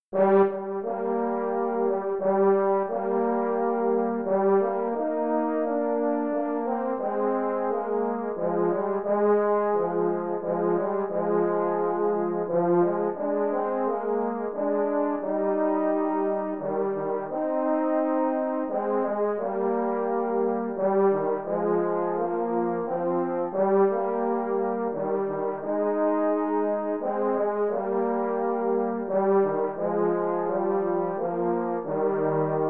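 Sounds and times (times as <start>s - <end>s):
French horn lullaby duet: 0.0s - 32.6s.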